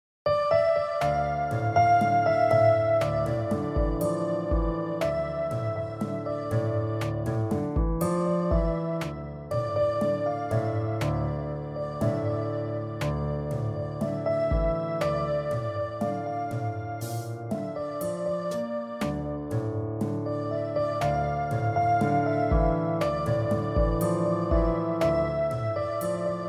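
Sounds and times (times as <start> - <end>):
keyboard: 0.3 - 26.4.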